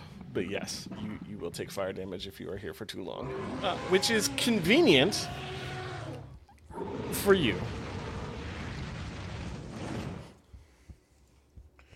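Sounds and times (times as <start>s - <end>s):
speech: 0.4s - 5.8s, 7.1s - 7.8s
dragon roar sound effect during a Dungeons & Dragons tabletop game: 3.2s - 10.4s.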